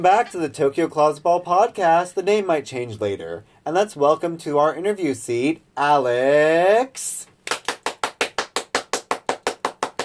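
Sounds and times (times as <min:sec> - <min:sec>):
speech: 0:00.0 - 0:07.3
one person clapping: 0:07.4 - 0:10.0.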